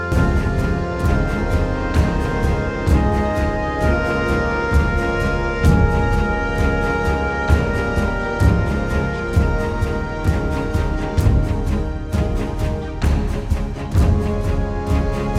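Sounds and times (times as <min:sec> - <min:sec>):
exploration music: 0:00.1 - 0:15.3.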